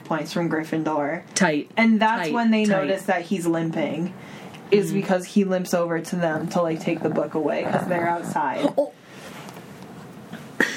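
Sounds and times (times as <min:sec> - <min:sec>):
speech: 0:00.1 - 0:09.0
dog snoring into the microphone: 0:06.0 - 0:08.8.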